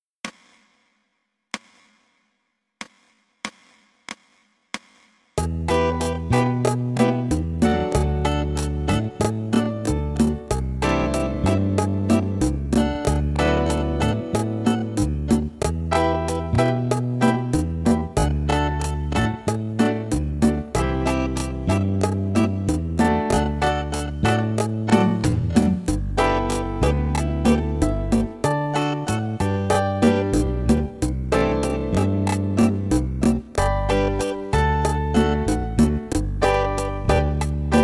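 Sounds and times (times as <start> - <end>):
slow bachata music in G: 5.4 - 37.8.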